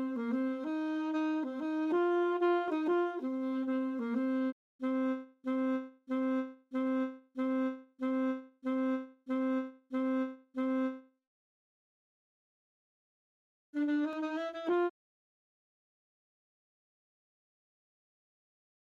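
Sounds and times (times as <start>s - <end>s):
alto saxophone: 0.0s - 11.1s, 13.8s - 15.0s.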